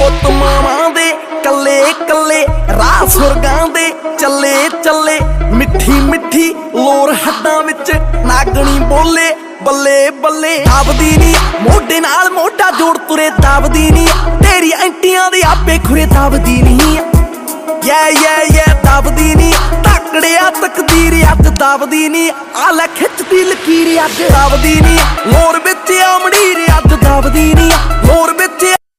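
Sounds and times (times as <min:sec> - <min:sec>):
Punjabi ringtone music: 0:00.0 - 0:28.8.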